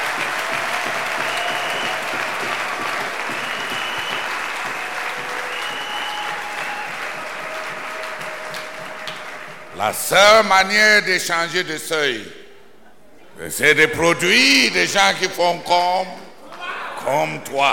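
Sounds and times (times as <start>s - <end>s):
audience applause: 0.0s - 9.8s
speech: 9.8s - 12.4s, 13.4s - 16.2s, 17.0s - 17.7s.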